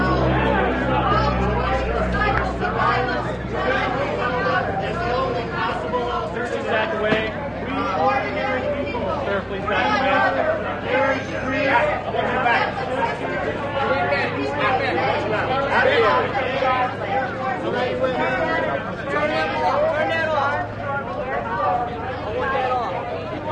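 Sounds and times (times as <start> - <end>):
low rumble: 0.0 - 6.1
crowd of protesters being pushed back, hubbub of voices: 0.0 - 23.5.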